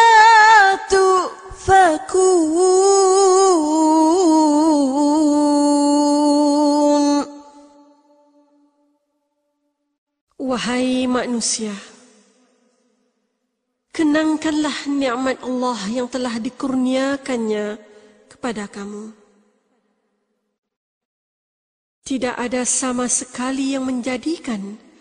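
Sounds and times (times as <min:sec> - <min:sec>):
Quran recitation of a surah verse: 0:00.0 - 0:08.7, 0:10.4 - 0:12.9, 0:13.9 - 0:19.2, 0:22.1 - 0:24.8.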